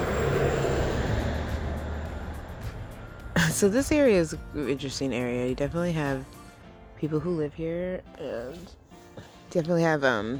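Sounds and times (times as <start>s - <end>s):
car driving past on street: 0.0s - 4.6s
speech: 3.5s - 6.4s, 7.0s - 10.3s.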